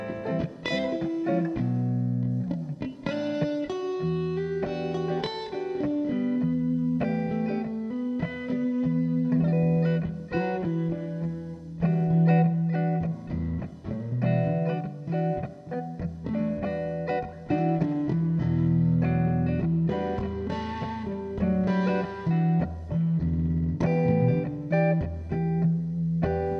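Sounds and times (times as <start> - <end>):
guitar jam in E minor: 0.0 - 26.5.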